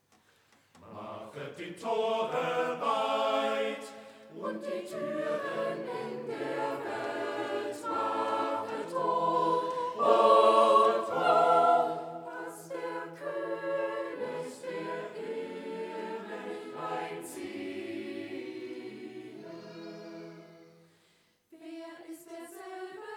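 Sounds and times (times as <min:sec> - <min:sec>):
choir singing: 0:00.8 - 0:23.1.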